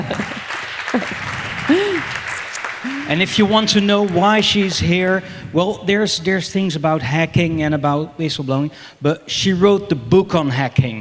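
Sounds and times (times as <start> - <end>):
audience applause: 0.0 - 4.7
speech: 3.1 - 10.9.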